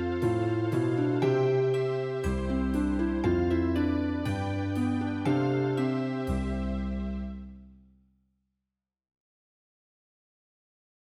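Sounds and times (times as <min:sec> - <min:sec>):
instrumental music: 0:00.0 - 0:07.9.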